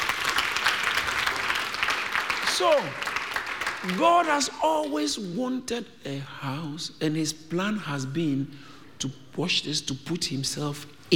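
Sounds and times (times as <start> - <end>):
audience clapping: 0.0 - 5.3
speech: 2.6 - 3.1, 3.8 - 11.1.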